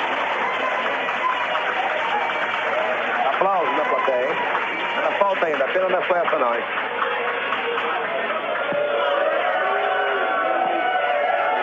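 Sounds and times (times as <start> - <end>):
spectators booing in a court chamber during a sentencing: 0.0 - 11.6
speech: 5.5 - 7.6.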